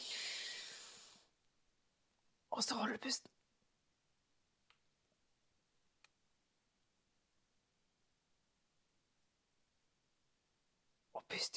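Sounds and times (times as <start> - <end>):
deep inhale through the nose: 0.0 - 1.3
speech: 2.6 - 3.4, 11.4 - 11.5.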